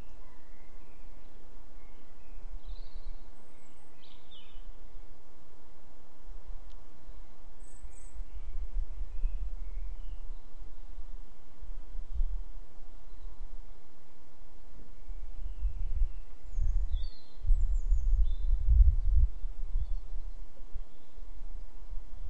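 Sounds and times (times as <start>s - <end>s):
blackbirds singing at dusk: 0.0s - 5.2s, 7.1s - 11.0s, 14.9s - 21.4s.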